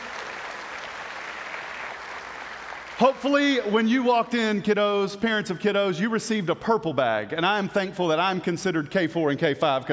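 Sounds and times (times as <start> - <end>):
audience clapping: 0.0 - 3.9
speech: 3.0 - 9.9.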